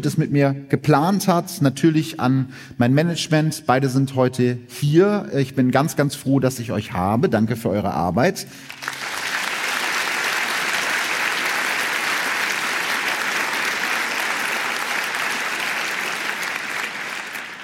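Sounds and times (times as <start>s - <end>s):
speech: 0.0s - 9.0s
audience applause: 8.7s - 17.6s.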